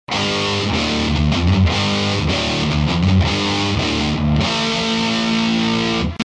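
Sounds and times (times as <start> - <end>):
Badcat double gain overdrive: 0.1 - 6.2.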